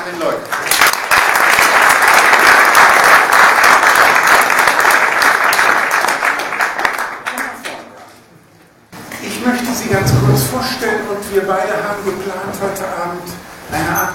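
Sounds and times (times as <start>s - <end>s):
audience applause: 0.0s - 7.8s
speech: 0.1s - 0.6s, 9.5s - 14.1s.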